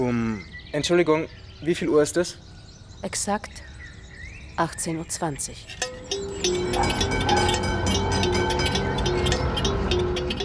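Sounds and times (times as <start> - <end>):
speech: 0.1 - 3.7, 4.6 - 7.4
tram running: 5.8 - 10.4.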